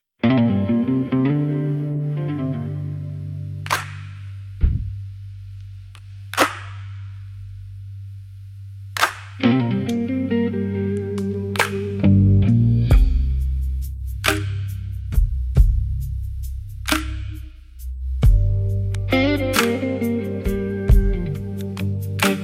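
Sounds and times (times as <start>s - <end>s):
instrumental stem: 0.2s - 22.4s.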